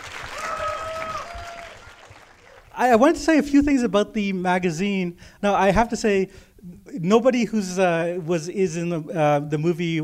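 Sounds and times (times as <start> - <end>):
audience round of applause: 0.0 - 2.7
speech: 2.8 - 10.0.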